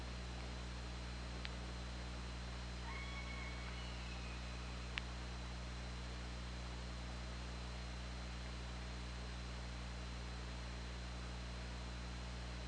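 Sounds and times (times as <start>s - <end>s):
hiss and low hum: 0.0s - 12.6s
killer whale tonal call: 2.8s - 4.9s.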